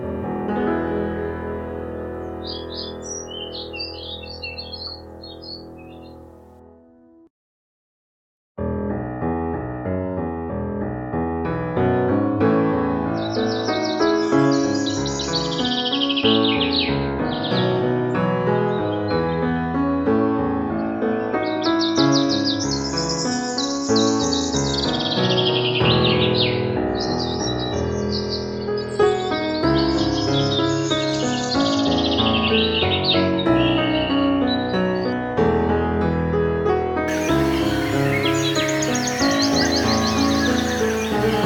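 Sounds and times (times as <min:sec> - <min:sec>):
piano playing: 0:00.0 - 0:07.3, 0:08.6 - 0:41.4
birdsong in harmony with piano: 0:02.1 - 0:06.5, 0:13.2 - 0:17.7, 0:21.3 - 0:35.0, 0:37.1 - 0:41.4.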